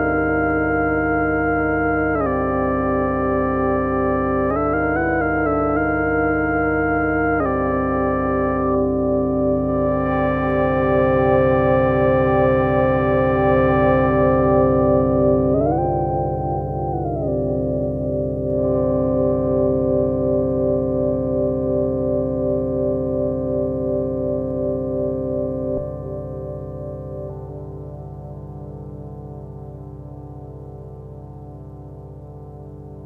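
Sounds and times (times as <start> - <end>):
synthesizer: 0.0 - 33.0.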